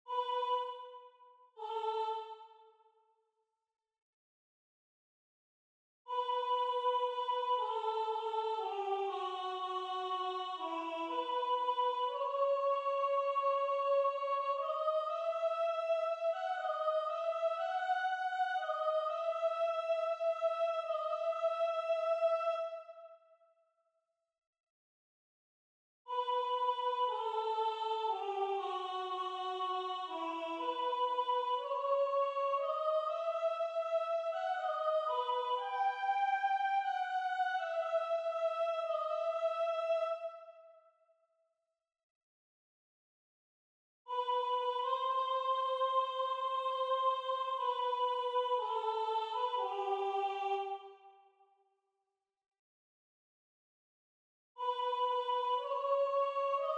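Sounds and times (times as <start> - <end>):
soprano singing: 0.1 - 1.0, 1.6 - 2.6, 6.1 - 22.9, 26.1 - 40.4, 44.1 - 51.0, 54.6 - 56.7.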